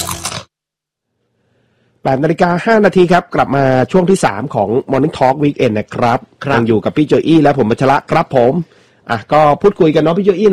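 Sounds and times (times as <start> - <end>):
biting into crunchy thick-cut potato chips: 0.0 - 0.5
speech: 2.0 - 10.5.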